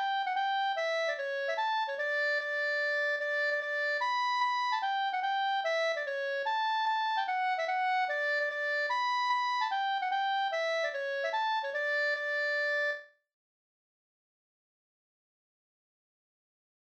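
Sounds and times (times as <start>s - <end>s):
hambo polka music: 0.0s - 13.0s.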